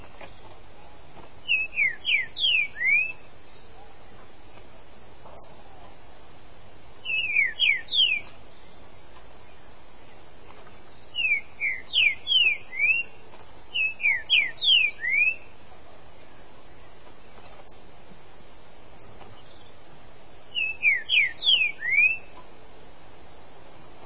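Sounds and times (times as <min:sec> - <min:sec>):
Green-winged Saltator song of bright whistled notes: 0:01.4 - 0:03.6, 0:07.0 - 0:08.8, 0:10.9 - 0:15.5, 0:20.5 - 0:22.4.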